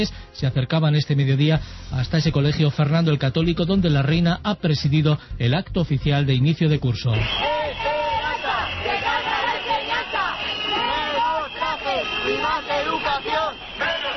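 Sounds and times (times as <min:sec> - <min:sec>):
speech: 0:00.0 - 0:07.5
protesters shouting and chanting outside school: 0:07.1 - 0:14.1.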